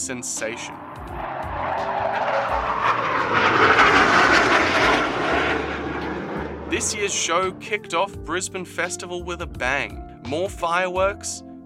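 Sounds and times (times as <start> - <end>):
speech: 0.0 - 1.9, 6.7 - 11.5
roar of RAAF military jets flying over: 0.4 - 7.8.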